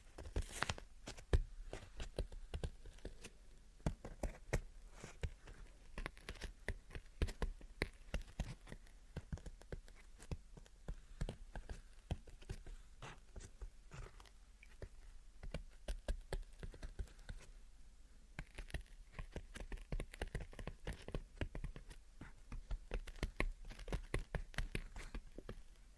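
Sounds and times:
tapping and scratching: 0:00.0 - 0:17.5, 0:18.4 - 0:25.8.

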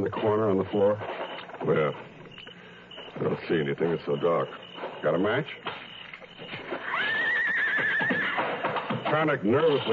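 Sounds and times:
speech: 0:00.0 - 0:02.1, 0:03.2 - 0:05.8, 0:09.1 - 0:09.9
restless horse neighing in its stall: 0:06.7 - 0:08.7.

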